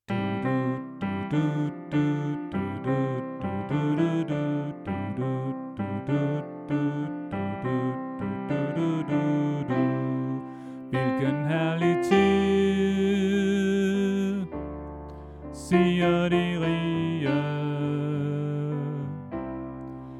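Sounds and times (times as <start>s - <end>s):
soprano voice: 0.1s - 14.7s, 15.6s - 19.5s.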